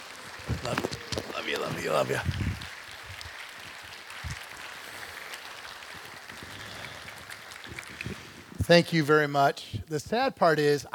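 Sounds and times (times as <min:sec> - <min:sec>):
audience applauding in a standing ovation for a guest speaker: 0:00.0 - 0:08.5
speech: 0:00.7 - 0:00.9, 0:01.7 - 0:02.4, 0:08.7 - 0:10.9.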